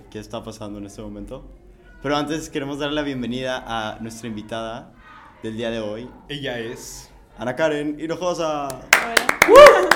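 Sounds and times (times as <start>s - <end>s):
speech: 0.1s - 9.8s
hands clapping: 8.6s - 9.9s.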